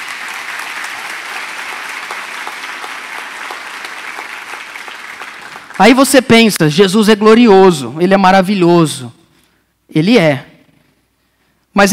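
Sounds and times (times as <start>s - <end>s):
applause: 0.0s - 6.6s
speech: 5.8s - 9.2s, 9.9s - 10.5s.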